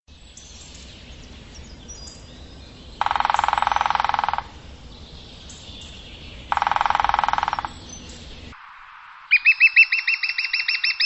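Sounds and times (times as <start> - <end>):
bird trill: 3.0 - 4.6, 5.4 - 8.6, 9.3 - 11.0.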